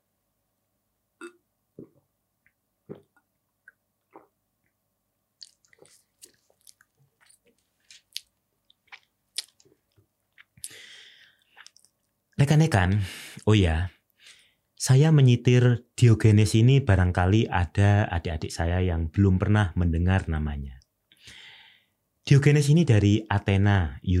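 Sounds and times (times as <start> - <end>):
speaker drinking: 1.2 - 4.8, 5.4 - 9.8, 10.4 - 12.0
speech: 12.5 - 14.0, 14.8 - 21.4, 22.3 - 24.1.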